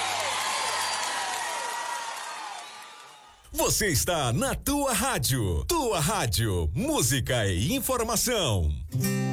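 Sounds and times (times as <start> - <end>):
audience applause for a singer: 0.0 - 3.5
speech: 3.5 - 9.2.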